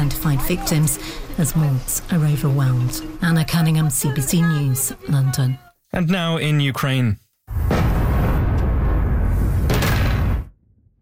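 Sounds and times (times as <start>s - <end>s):
speech: 0.0s - 7.7s
explosions in the night sky over the capital: 7.5s - 11.0s.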